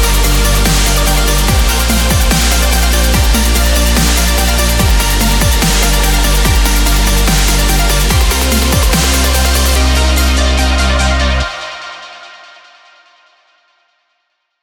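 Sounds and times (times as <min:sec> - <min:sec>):
space science dubstep music: 0:00.0 - 0:13.0.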